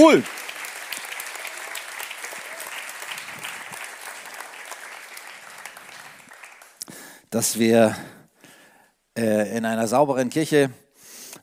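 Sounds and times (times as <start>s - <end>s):
speech: 0.0s - 0.4s, 7.3s - 8.2s, 9.2s - 10.8s
audience applause: 0.0s - 6.8s.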